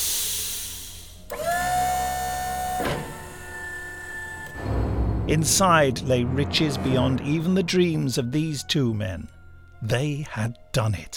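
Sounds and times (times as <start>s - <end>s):
hydraulic vault door hissing: 0.0s - 5.0s
vault door motor whining hum: 1.2s - 7.3s
speech: 5.3s - 11.1s.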